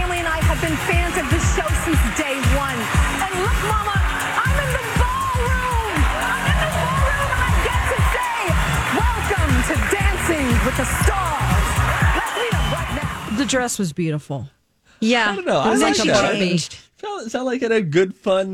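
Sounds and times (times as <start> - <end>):
studio audience cheering and applauding at the Dancing with the Stars season premiere: 0.0 - 13.5
speech: 0.6 - 3.1, 13.5 - 18.5
amplified voice speaking: 13.3 - 17.9.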